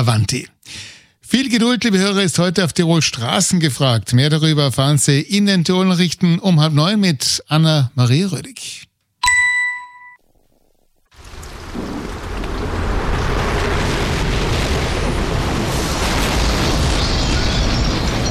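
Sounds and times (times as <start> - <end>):
speech: 0.0 - 8.9
bright chime: 9.2 - 10.2
storm pounding rain: 11.1 - 18.2
storm wind roaring: 11.2 - 18.2.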